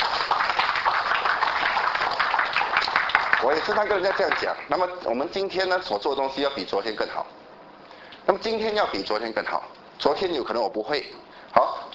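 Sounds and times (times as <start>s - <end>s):
audience applause: 0.0s - 4.6s
speech: 3.4s - 7.4s, 8.2s - 11.9s.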